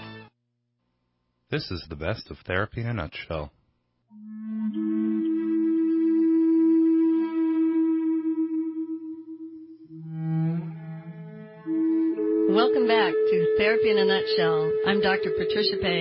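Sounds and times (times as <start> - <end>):
Native American flute music: 0.0 - 0.3, 4.2 - 15.9
speech: 1.5 - 4.2, 12.8 - 15.9.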